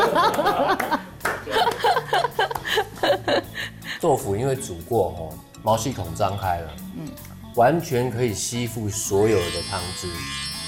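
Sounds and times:
laughter: 0.0 - 3.8
hand claps: 0.2 - 3.2
speech: 4.0 - 10.5.

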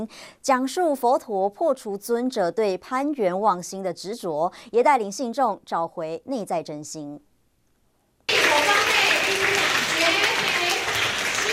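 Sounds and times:
speech: 0.0 - 7.3
warm audience applause: 8.3 - 11.5.

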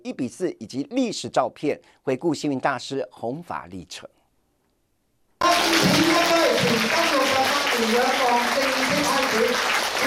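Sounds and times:
speech: 0.0 - 4.2, 5.4 - 10.0
warm applause at ribbon-cutting ceremony: 5.4 - 10.0.

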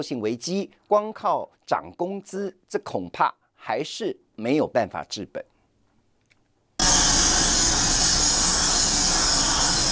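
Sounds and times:
speech: 0.0 - 5.5
power tool grinding on a factory production line: 6.8 - 9.9.

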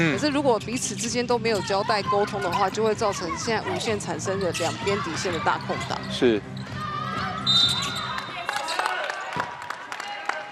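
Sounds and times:
speech: 0.0 - 6.5
crowd and court noise at a basketball game: 0.0 - 10.5
referee's whistle at a basketball game: 7.4 - 8.3.

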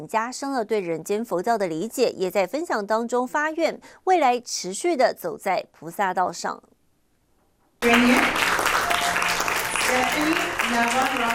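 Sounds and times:
speech: 0.0 - 6.7, 9.9 - 11.3
warm applause at a ceremony: 7.8 - 11.3.

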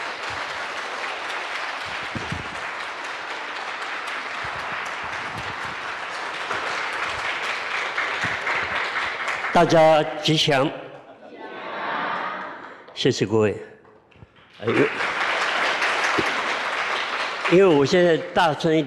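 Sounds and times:
crowd applause welcoming a speaker: 0.0 - 10.1, 14.4 - 18.8
speech: 9.6 - 10.8, 13.0 - 13.7, 14.6 - 15.1, 17.5 - 18.8
laughter: 10.6 - 12.8, 14.6 - 15.3.

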